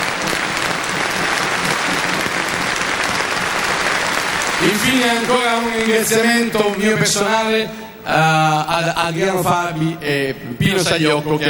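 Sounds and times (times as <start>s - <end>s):
audience applause: 0.0s - 7.2s
speech: 4.6s - 11.4s.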